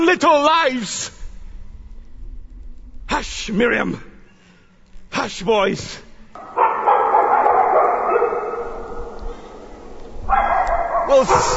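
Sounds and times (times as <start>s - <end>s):
speech: 0.0s - 1.2s, 3.2s - 4.1s, 5.1s - 6.0s, 11.1s - 11.5s
pack of dogs barking and yelping: 6.4s - 11.5s.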